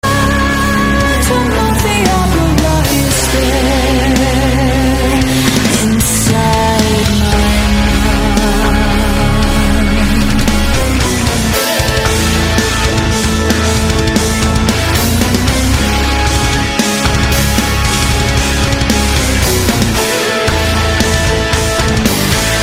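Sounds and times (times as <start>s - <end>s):
rock ringtone: 0.1s - 22.6s.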